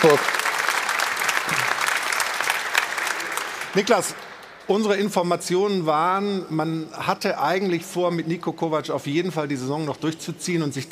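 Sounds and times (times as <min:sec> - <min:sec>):
speech: 0:00.0 - 0:00.4, 0:03.7 - 0:10.8
studio audience applause in Munich: 0:00.0 - 0:04.5.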